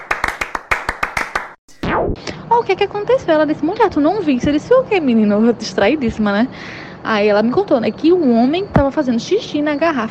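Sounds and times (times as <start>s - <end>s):
round of applause with hand claps: 0.0s - 1.6s
speech: 2.5s - 10.0s.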